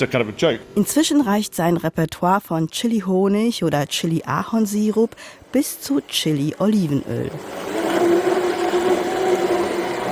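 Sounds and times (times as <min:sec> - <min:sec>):
speech: 0:00.0 - 0:07.8
large electric stick blender mixing homemade hot cranberry sauce: 0:07.0 - 0:10.0.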